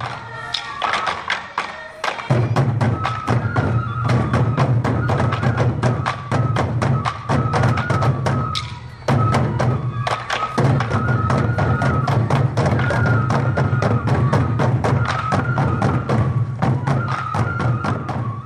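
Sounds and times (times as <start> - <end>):
festival dance taiko drums played by a group: 0.0 - 18.4.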